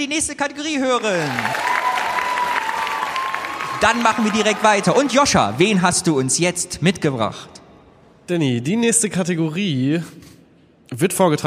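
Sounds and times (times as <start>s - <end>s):
speech: 0.0s - 1.8s, 3.8s - 7.6s, 8.3s - 11.4s
audience applause: 1.0s - 6.4s.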